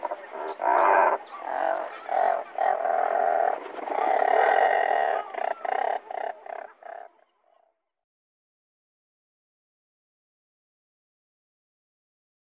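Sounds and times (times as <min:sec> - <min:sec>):
razorbill calling: 0:00.0 - 0:07.6.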